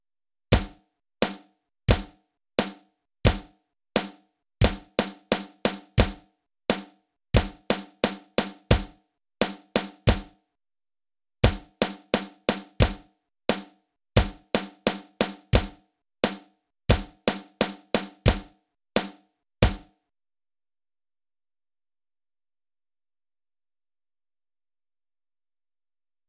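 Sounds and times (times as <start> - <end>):
drums: 0.5 - 10.4, 11.5 - 19.9.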